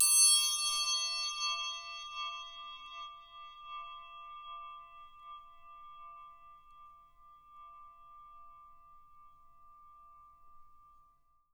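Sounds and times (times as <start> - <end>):
triangle percussion panned left: 0.0 - 3.9.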